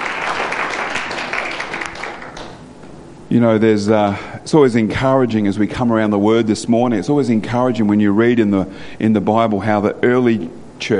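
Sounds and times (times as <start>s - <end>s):
crowd applauding: 0.0s - 2.6s
speech: 3.3s - 10.9s.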